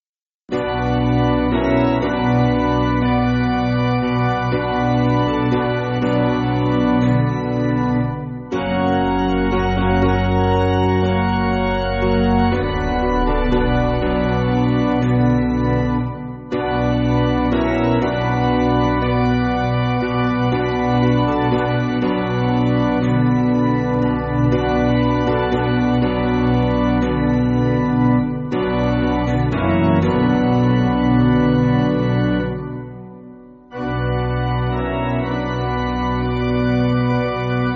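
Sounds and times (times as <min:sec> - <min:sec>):
spiritual on piano: 0:00.5 - 0:37.7.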